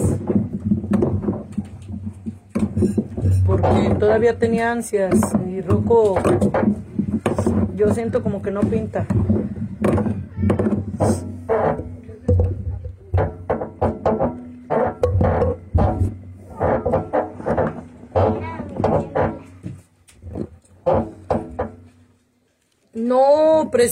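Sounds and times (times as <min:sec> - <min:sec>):
table creaking and groaning: 0:00.0 - 0:22.2
speech: 0:02.8 - 0:09.4, 0:11.0 - 0:11.2.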